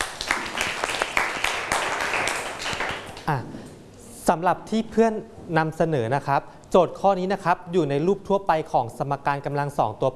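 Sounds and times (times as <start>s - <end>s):
classroom applause: 0.0s - 3.3s
speech: 3.3s - 3.6s, 4.3s - 10.1s.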